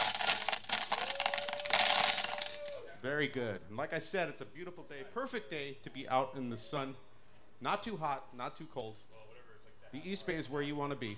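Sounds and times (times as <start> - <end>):
coins dropping: 0.0 - 2.9
speech: 3.0 - 9.1, 9.9 - 11.1.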